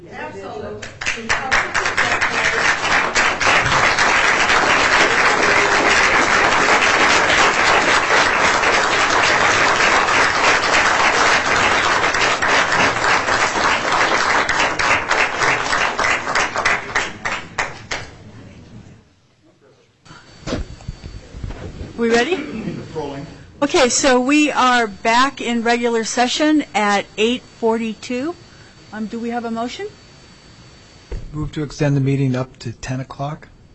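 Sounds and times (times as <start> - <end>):
speech: 0.1 - 1.9, 23.8 - 30.0, 31.4 - 33.5
audience applause: 1.0 - 18.1.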